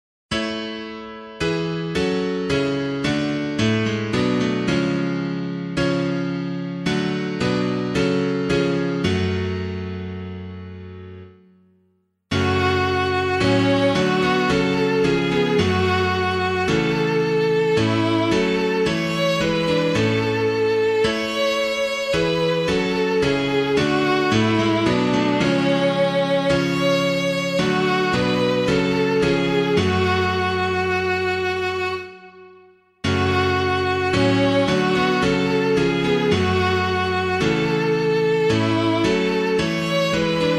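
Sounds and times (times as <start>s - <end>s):
piano hymn: 0.3s - 11.7s, 12.3s - 40.5s.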